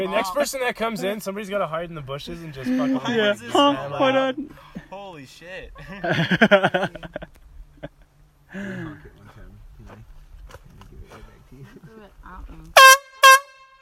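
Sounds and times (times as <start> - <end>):
speech: 0.0 - 7.2
laughter: 2.6 - 4.9, 5.7 - 9.0
loud brassy air horn blasts: 12.8 - 13.8.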